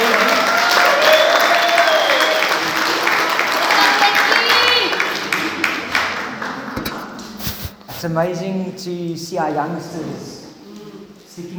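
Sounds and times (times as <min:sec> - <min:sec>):
audience applause: 0:00.0 - 0:07.2
speech: 0:08.0 - 0:10.4, 0:11.4 - 0:11.5.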